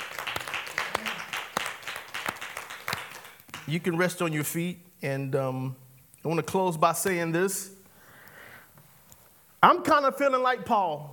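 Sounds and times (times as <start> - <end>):
audience clapping hands: 0.0 - 4.3
speech: 3.7 - 7.8, 9.6 - 11.1.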